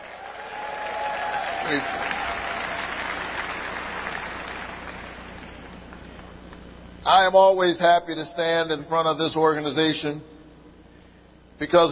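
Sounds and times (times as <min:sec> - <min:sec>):
audience applause: 0:00.0 - 0:05.8
speech: 0:01.7 - 0:02.0, 0:07.1 - 0:10.3, 0:11.6 - 0:11.8.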